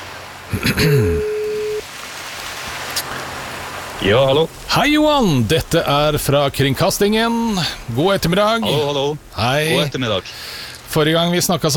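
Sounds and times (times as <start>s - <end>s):
low hiss: 0.0s - 11.7s
speech: 0.7s - 1.3s, 4.0s - 11.7s
phone line ringing: 1.1s - 1.8s.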